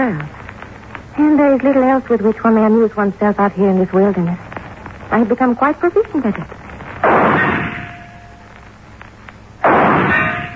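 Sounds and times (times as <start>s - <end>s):
speech: 0.0s - 0.4s, 1.2s - 4.5s, 5.1s - 7.1s
gunshots from a .38 caliber gun on a .45 frame: 6.8s - 8.6s, 9.6s - 10.5s.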